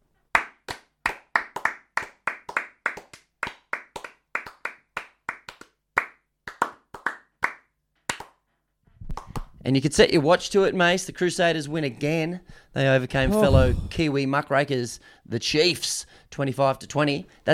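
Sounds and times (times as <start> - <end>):
celebratory hand clapping: 0.3 - 8.5, 9.1 - 9.6
speech: 9.6 - 17.5.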